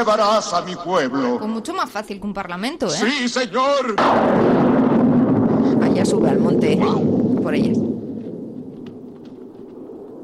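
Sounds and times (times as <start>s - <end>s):
speech: 0.0s - 4.7s, 6.0s - 8.0s
thunder sound effect: 4.0s - 10.2s.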